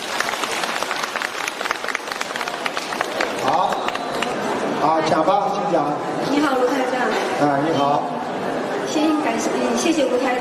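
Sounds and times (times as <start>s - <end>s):
audience applause: 0.0s - 4.8s
speech: 4.9s - 8.2s, 8.9s - 10.3s.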